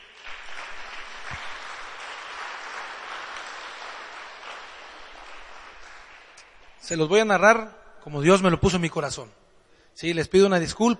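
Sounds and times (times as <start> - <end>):
audience applause: 0.0 - 6.8
speech: 6.8 - 9.4, 10.0 - 10.9.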